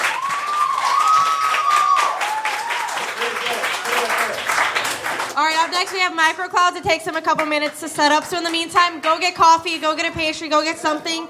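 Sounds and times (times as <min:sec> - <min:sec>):
audience applause: 0:00.0 - 0:06.0
speech: 0:05.7 - 0:11.2.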